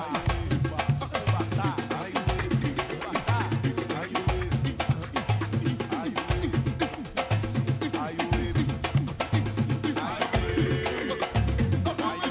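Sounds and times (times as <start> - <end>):
loud music on a noisy street in Luanda: 0.0 - 12.3
quick dense percussion hits: 0.0 - 12.3.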